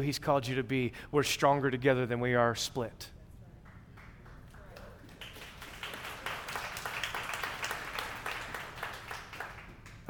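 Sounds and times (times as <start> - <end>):
speech: 0.0 - 3.2
scattered partial applause from audience: 3.7 - 10.0.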